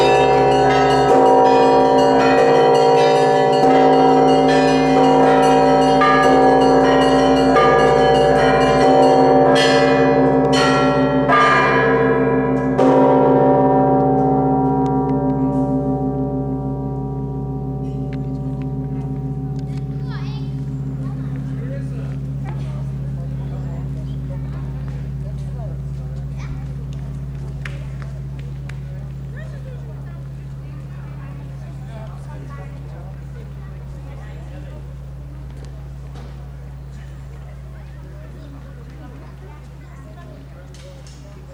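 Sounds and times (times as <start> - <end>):
solemn sound: 0.0 - 26.0.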